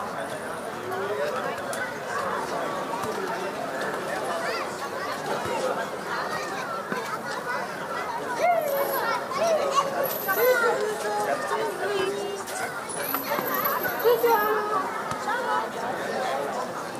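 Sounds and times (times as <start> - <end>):
children chattering at play on a summer evening: 0.0 - 16.9
children squealing and shouting at play: 6.2 - 15.6.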